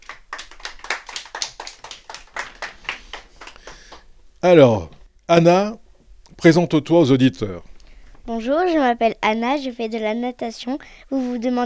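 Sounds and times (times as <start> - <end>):
group clapping hands: 0.0 - 4.1
speech: 4.4 - 5.8, 6.4 - 7.7, 8.3 - 11.6.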